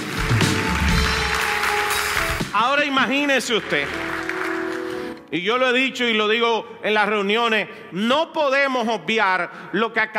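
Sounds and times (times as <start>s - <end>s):
audience applauding: 0.0s - 5.2s
speech: 2.6s - 4.1s, 5.3s - 10.1s.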